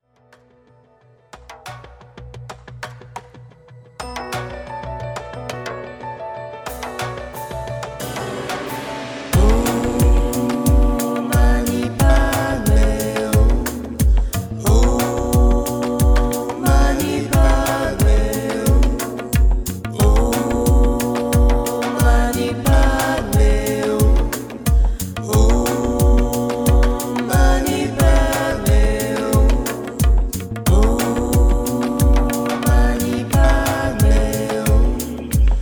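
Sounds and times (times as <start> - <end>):
mantra chanting: 9.4 - 19.4, 20.0 - 35.6.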